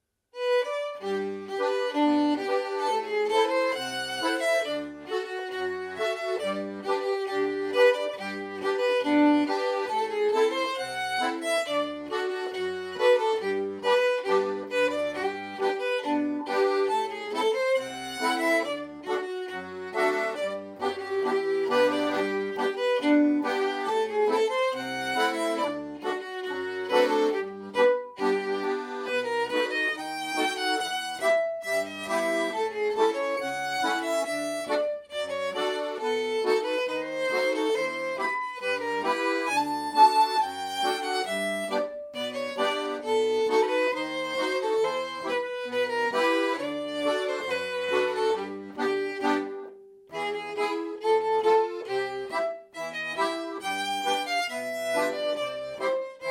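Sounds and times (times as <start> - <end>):
fiddle playing slow polka: 0.3 - 56.2.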